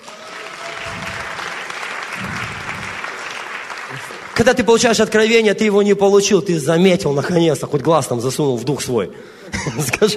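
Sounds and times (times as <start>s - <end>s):
audience applause: 0.0s - 4.6s
speech: 4.4s - 10.1s.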